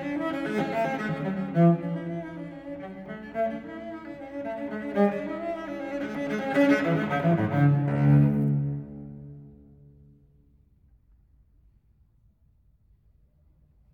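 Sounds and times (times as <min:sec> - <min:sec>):
unaccompanied cello piece in D minor: 0:00.0 - 0:10.0.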